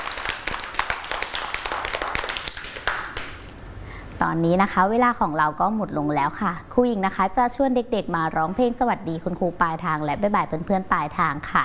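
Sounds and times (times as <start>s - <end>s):
children clapping hands: 0.0s - 3.5s
speech: 4.3s - 11.6s.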